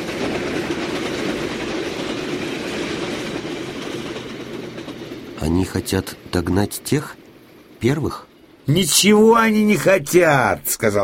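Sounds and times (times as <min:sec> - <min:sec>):
wheels clattering on rails: 0:00.0 - 0:08.2
express train rushing past: 0:00.0 - 0:11.0
speech: 0:05.5 - 0:07.2, 0:07.8 - 0:11.0.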